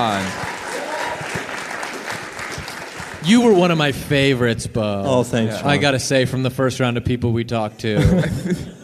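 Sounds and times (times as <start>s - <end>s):
speech: 0.0s - 0.5s, 3.2s - 8.8s
sparse audience applause: 0.0s - 4.3s
laughter: 7.9s - 8.8s.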